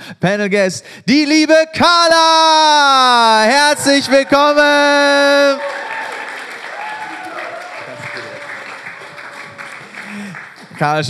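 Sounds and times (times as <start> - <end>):
speech: 0.1 - 5.8, 10.8 - 11.0
faint cheer: 3.8 - 10.4
audience applause: 3.9 - 11.0.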